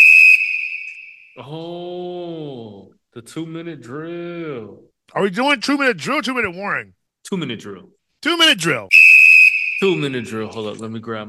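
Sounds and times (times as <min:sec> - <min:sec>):
piercing high whistle blast marking a two-minute warning: 0:00.0 - 0:01.4, 0:08.9 - 0:10.4
speech: 0:01.4 - 0:02.0, 0:03.2 - 0:09.0, 0:09.8 - 0:11.2.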